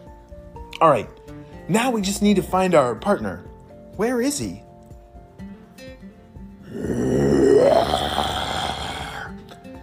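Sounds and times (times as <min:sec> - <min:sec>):
speech: 0:00.8 - 0:04.6
voice imitating a T-Rex roar: 0:06.6 - 0:09.4.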